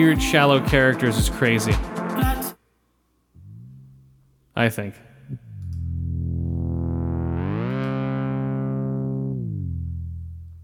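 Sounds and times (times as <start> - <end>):
speech: 0.0 - 2.3, 4.6 - 5.4
trippy TV show soundtrack music: 0.0 - 2.6, 5.4 - 10.3.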